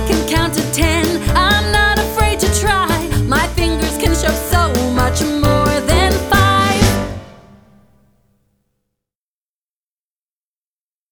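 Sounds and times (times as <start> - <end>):
counting song: 0.1 - 7.8.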